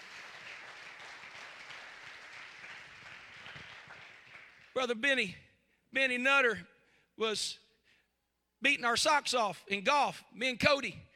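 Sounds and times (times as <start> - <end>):
people clapping: 0.0 - 5.0
speech: 4.8 - 7.6, 8.6 - 11.0.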